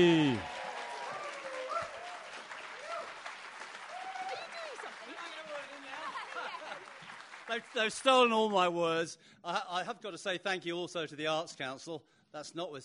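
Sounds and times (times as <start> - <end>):
audience applause: 0.0 - 8.3
speech: 7.6 - 12.8.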